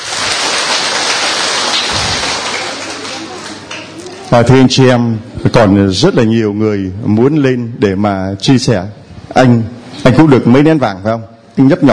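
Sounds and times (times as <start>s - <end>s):
round of applause: 0.0s - 4.3s
speech: 4.3s - 11.9s.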